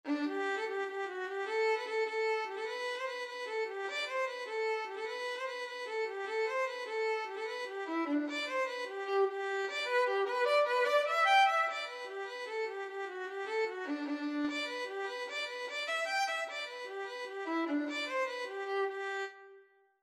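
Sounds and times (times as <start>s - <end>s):
violin: 0.0s - 19.8s.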